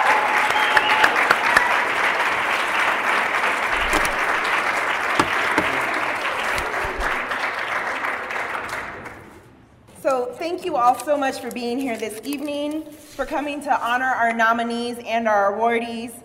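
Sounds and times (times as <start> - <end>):
audience round of applause: 0.0 - 9.3
speech: 10.5 - 16.2.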